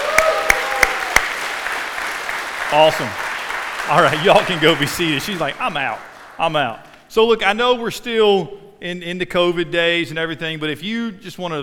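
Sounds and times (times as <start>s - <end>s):
audience applause: 0.0s - 6.8s
speech: 2.7s - 3.2s, 3.8s - 11.6s.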